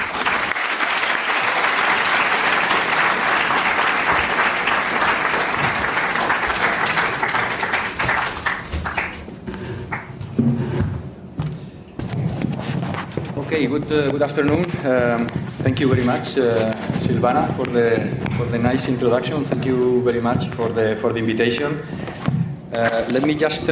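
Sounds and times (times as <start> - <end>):
audience applause: 0.0 - 10.1
faint shuffling: 11.4 - 23.7
speech: 13.7 - 22.0, 22.8 - 23.7.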